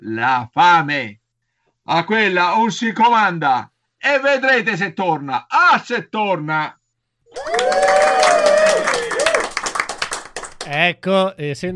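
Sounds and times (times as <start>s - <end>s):
speech: 0.0s - 1.2s, 1.9s - 8.9s, 10.7s - 11.7s
applause sound effect: 7.4s - 10.8s.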